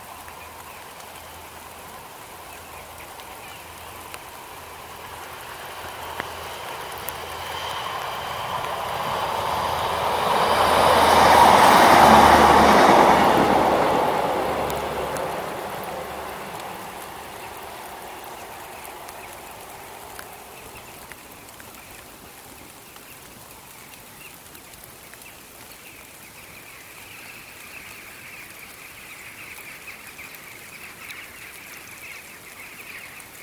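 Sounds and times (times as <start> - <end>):
rain: 0.0 - 33.4
trains on railways: 0.9 - 21.7.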